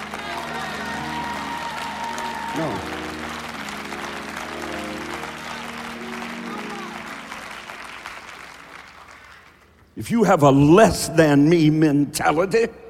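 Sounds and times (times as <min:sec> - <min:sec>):
audience applause: 0:00.0 - 0:09.9
speech: 0:02.6 - 0:03.0, 0:10.0 - 0:12.8.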